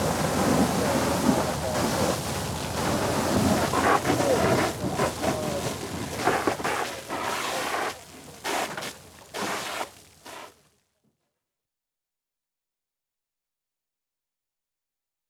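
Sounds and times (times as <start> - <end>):
fire hoses spraying on fire: 0.0 - 8.7.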